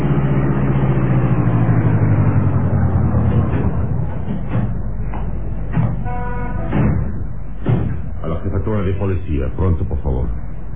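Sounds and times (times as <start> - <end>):
taxi car slowing to a stop: 0.0 - 8.6
taxi car engine idling: 0.0 - 10.7
dull thumps and knocks: 3.4 - 8.2.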